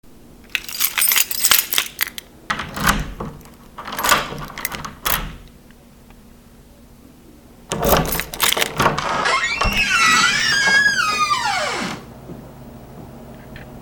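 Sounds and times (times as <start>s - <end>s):
deadbolt opening: 0.6s - 5.5s, 7.7s - 11.2s
door knob turning: 2.5s - 5.5s, 7.7s - 11.9s.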